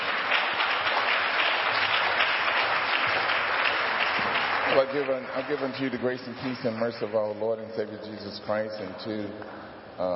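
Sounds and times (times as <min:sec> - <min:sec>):
audience applauding at a church jubilee gathering: 0:00.0 - 0:06.5
speech: 0:04.7 - 0:10.1.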